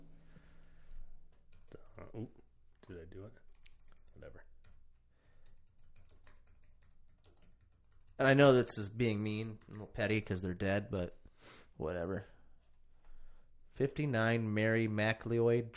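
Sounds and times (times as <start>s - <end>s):
typing on a computer keyboard: 1.3s - 2.1s, 3.4s - 8.3s, 9.4s - 10.0s
speech: 2.1s - 3.5s, 8.2s - 12.4s, 13.8s - 15.7s.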